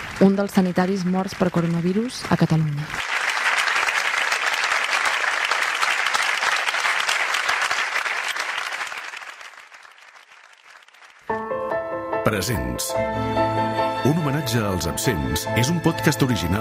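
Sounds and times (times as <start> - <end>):
sustained applause from many people clapping for a doctor: 0.0 - 11.4
speech: 0.2 - 3.1, 12.3 - 16.6.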